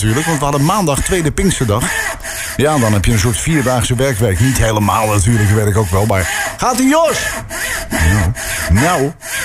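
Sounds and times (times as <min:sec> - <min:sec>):
speech: 0:00.0 - 0:02.0, 0:02.6 - 0:09.4
saw cutting through a tree: 0:00.0 - 0:09.4.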